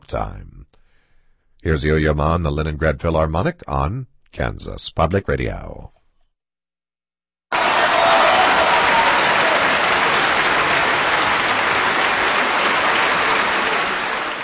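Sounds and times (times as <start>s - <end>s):
speech: 0.1s - 0.6s, 1.6s - 5.9s
concert audience applause for cellist: 7.5s - 14.4s.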